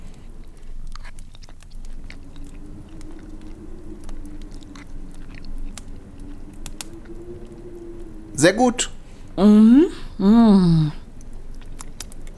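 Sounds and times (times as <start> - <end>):
chewing and mouth smacking eating leftover egg and tomato dish with a spoon: 0.0 - 8.1, 11.0 - 12.3
speech: 8.4 - 11.0.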